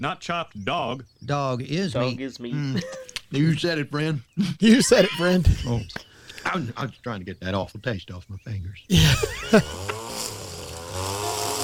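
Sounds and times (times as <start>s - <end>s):
speech: 0.0s - 9.9s
laughter: 2.5s - 3.6s, 4.4s - 6.8s, 8.9s - 10.0s
weed whacker droning: 8.9s - 11.6s.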